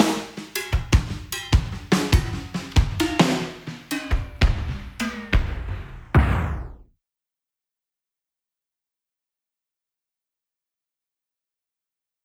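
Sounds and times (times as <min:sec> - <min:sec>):
drum: 0:00.0 - 0:06.9.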